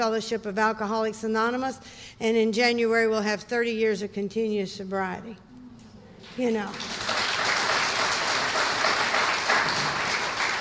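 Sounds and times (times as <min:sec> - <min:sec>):
speech: 0:00.0 - 0:05.5, 0:06.3 - 0:07.0
crowd clapping: 0:06.2 - 0:10.5.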